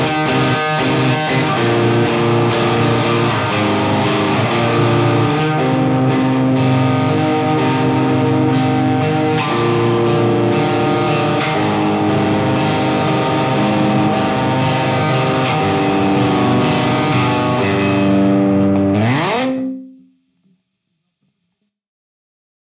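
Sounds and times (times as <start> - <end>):
overdriven electric guitar: 0.0 - 20.4.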